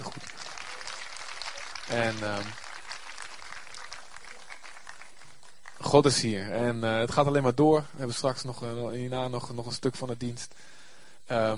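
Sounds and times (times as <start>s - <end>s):
audience applause: 0.0s - 6.2s
speech: 1.9s - 2.6s, 5.9s - 11.5s.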